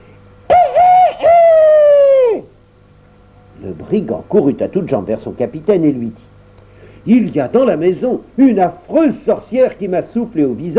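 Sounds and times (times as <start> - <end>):
rooster crowing: 0.5 - 2.5
speech: 3.8 - 6.3, 7.0 - 10.7.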